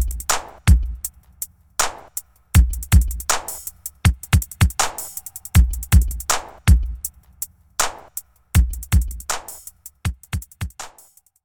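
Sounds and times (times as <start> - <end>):
instrumental beat for rhymes: 0.0 - 11.4.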